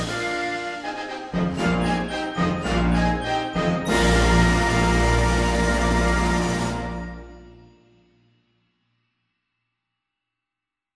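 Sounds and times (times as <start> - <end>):
exuberant woodwind music: 0.0 - 7.7.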